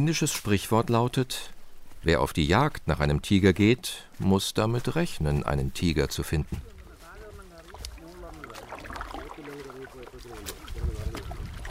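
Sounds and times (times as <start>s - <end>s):
speech: 0.0s - 6.7s
paddling a bamboo raft on a river: 6.6s - 11.6s.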